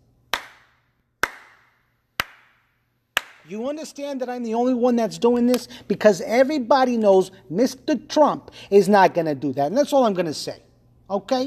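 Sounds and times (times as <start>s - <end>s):
hand clapping: 0.3s - 3.5s
speech: 3.4s - 11.4s.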